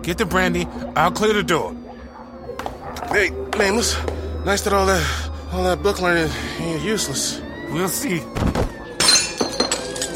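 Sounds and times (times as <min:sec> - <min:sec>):
speech: 0:00.0 - 0:01.8, 0:03.0 - 0:08.8
dropped brandy glass bottle shattering on the floor: 0:09.0 - 0:10.1
glass pieces tinkling: 0:09.0 - 0:10.1.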